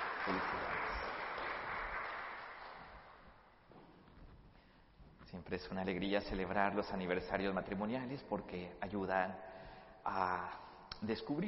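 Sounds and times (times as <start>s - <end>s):
crowd clapping: 0.0s - 3.6s
speech: 0.2s - 0.8s, 5.3s - 11.4s.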